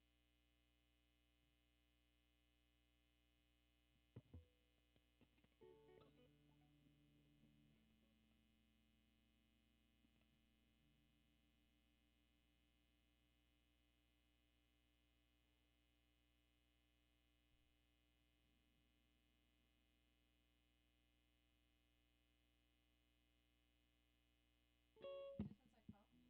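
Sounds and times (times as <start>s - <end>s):
guitar: 4.1s - 11.7s, 24.9s - 26.2s.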